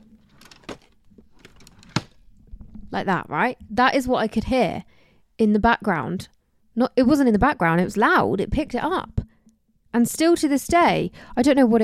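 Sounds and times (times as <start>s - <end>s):
wooden wardrobe drawer sliding: 0.0s - 2.2s
faint rustling: 0.0s - 3.0s
speech: 2.9s - 9.2s, 9.9s - 11.8s.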